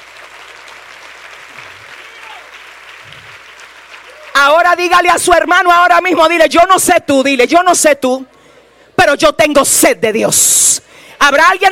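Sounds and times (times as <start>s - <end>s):
audience applause: 0.0s - 4.8s
speech: 4.4s - 8.3s, 9.1s - 11.6s.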